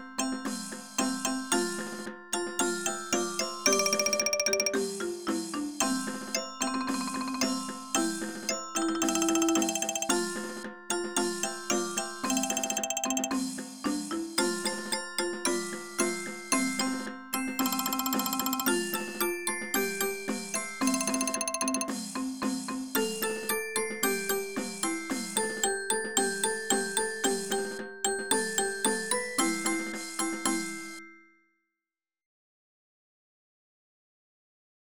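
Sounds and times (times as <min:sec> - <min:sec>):
percussion: 0:00.0 - 0:31.3.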